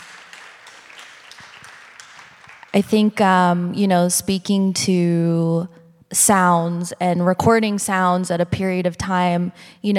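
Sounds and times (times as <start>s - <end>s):
audience clapping: 0.0s - 3.2s
speech: 2.8s - 9.9s.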